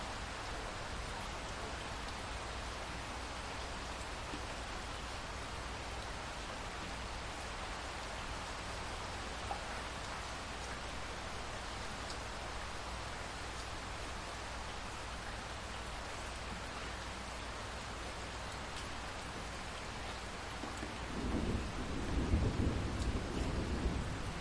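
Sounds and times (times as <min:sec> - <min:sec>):
light rain dripping after a thunderstorm: 0:00.0 - 0:24.4
distant thunder rumbles: 0:21.0 - 0:24.4.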